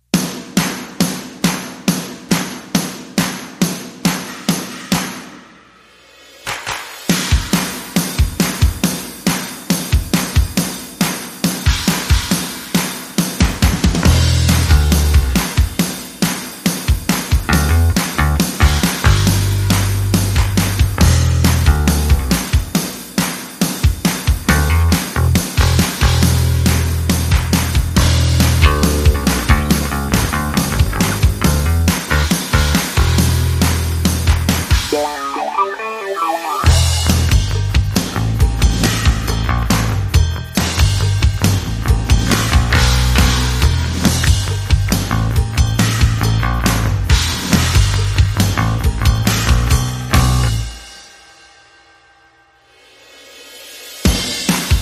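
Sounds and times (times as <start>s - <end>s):
drums: 0.0s - 54.8s
bass: 13.6s - 15.7s, 17.3s - 22.6s, 24.4s - 35.9s, 36.6s - 50.8s.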